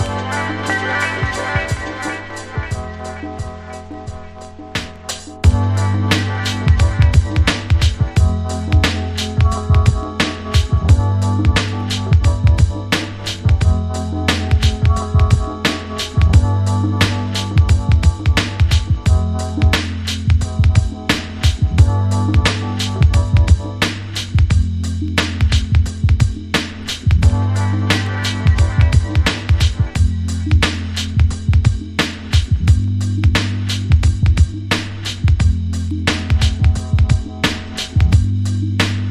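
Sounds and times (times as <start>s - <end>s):
instrumental remix: 0.0s - 39.0s.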